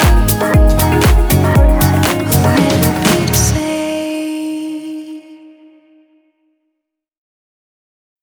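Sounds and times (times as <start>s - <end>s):
chillout music with vocals: 0.0s - 5.8s.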